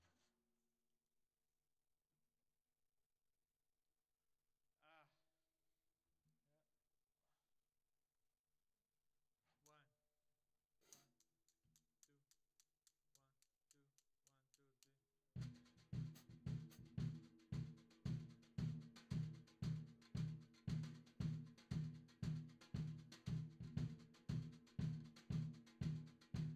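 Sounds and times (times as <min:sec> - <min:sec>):
tom drum: 0:15.4 - 0:26.5.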